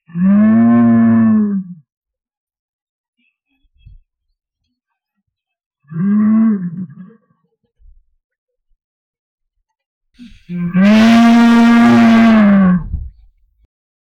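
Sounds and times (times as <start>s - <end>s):
cow mooing during abduction: 0.1s - 1.6s, 5.9s - 7.0s, 10.5s - 13.0s.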